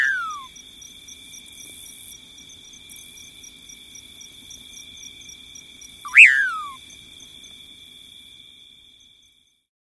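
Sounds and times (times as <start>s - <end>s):
Common Pauraque calling: 6.1s - 6.8s.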